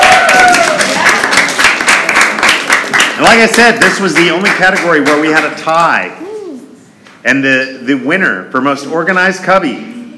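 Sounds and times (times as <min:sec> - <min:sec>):
audience applause for Jack: 0:00.0 - 0:05.6
speech: 0:03.2 - 0:06.3, 0:07.2 - 0:10.0.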